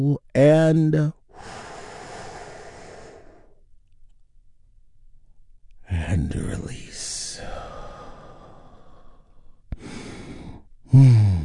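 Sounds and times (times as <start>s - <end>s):
speech: 0.0s - 1.6s, 5.9s - 6.8s, 10.9s - 11.3s
deep breath during guided relaxation exercise: 1.3s - 3.6s, 7.4s - 11.4s.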